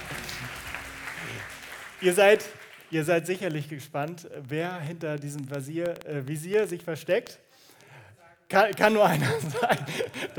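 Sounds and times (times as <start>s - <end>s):
crowd applause: 0.0s - 3.0s
speech: 2.0s - 7.4s, 8.5s - 10.3s
laughter: 9.0s - 10.3s.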